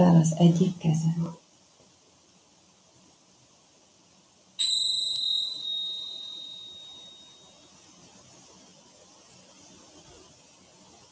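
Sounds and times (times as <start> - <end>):
speech: 0.0 - 1.4
small bell ringing: 4.6 - 7.7.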